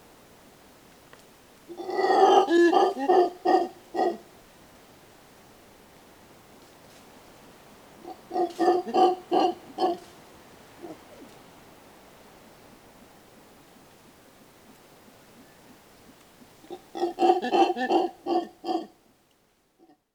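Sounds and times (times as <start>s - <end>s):
mantled howler monkey roaring: 1.7s - 4.2s, 8.0s - 10.1s, 16.7s - 18.9s
speech: 8.9s - 9.3s.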